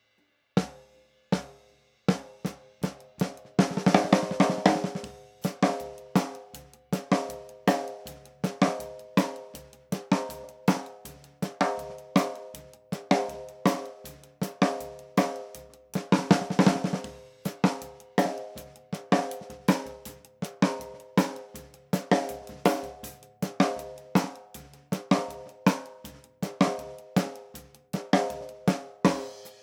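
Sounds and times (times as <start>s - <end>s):
snare drum: 0.6s - 29.6s.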